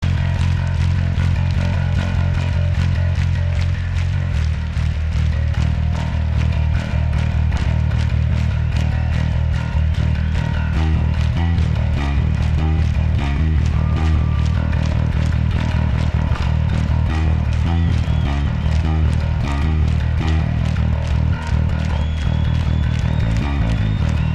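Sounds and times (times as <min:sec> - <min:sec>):
bass solo: 0:00.0 - 0:24.3.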